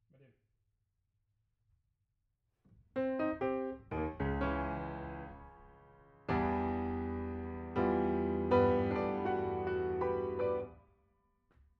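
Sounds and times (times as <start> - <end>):
piano note B: 3.0 - 10.7.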